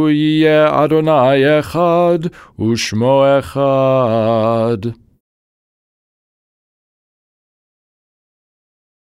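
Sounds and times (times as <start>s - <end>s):
person chanting a prayer in minor: 0.0s - 5.0s.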